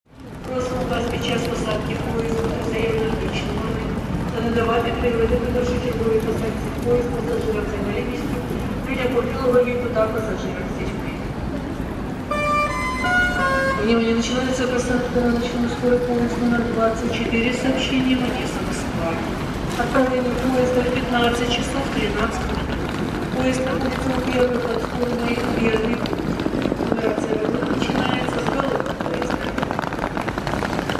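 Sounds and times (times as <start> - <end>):
railway station ambience at Odessa: 0.1 - 30.9.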